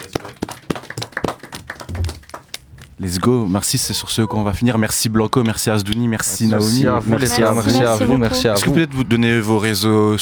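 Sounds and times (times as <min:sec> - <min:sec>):
sparse hand claps for performers: 0:00.0 - 0:02.9
speech: 0:03.0 - 0:10.1.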